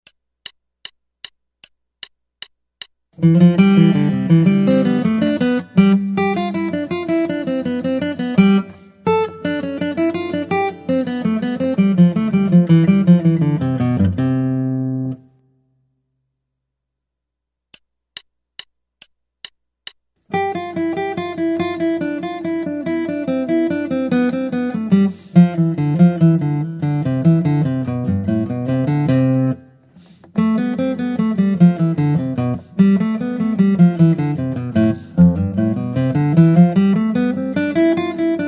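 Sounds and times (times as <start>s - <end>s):
guitar: 3.2s - 15.5s, 20.3s - 38.4s.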